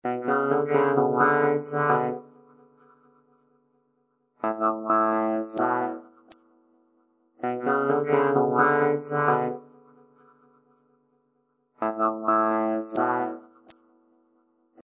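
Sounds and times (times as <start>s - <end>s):
vocoder voice: 0.0s - 2.6s, 4.4s - 6.2s, 7.4s - 9.9s, 11.8s - 13.7s.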